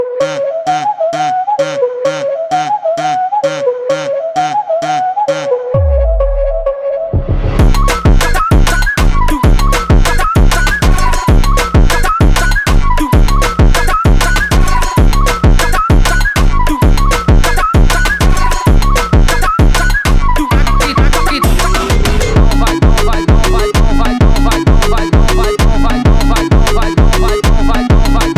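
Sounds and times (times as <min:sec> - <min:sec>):
Brazilian funk phonk music: 0:00.2 - 0:28.3.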